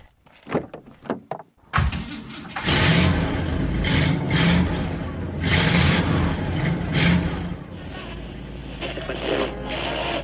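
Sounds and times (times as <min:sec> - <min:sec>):
big car engine revving: 0:02.6 - 0:10.2.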